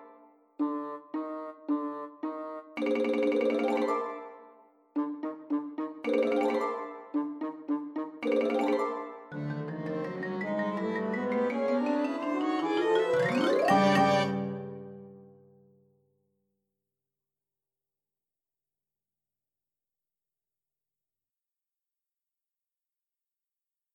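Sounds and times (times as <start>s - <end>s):
song accompaniment without vocals: 0.0s - 15.6s.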